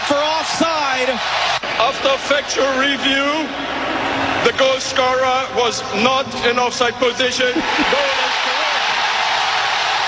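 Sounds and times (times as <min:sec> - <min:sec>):
huge stadium crowd cheering in celebration: 0:00.0 - 0:10.0
speech: 0:00.1 - 0:08.4
laughter: 0:07.2 - 0:08.8.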